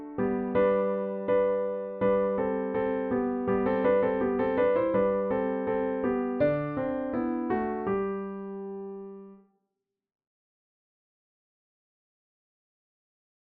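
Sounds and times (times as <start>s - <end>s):
piano harmony: 0.0s - 9.4s.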